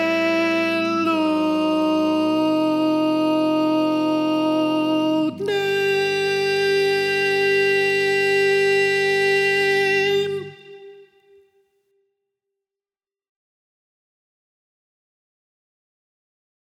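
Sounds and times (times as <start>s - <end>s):
tenor singing: 0.0s - 11.5s.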